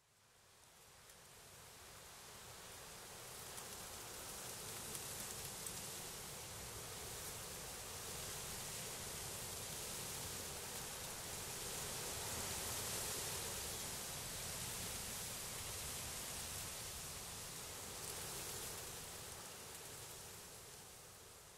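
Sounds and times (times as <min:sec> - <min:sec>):
wind: 0:00.0 - 0:21.5.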